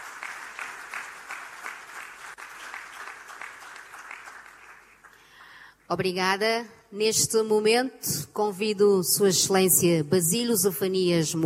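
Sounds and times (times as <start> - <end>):
audience applause: 0.0 - 5.6
speech: 5.9 - 11.4.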